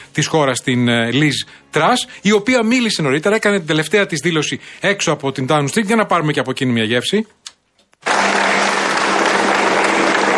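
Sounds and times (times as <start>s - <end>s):
speech: 0.2s - 7.4s
crowd applauding outside Downing Street: 8.0s - 10.3s.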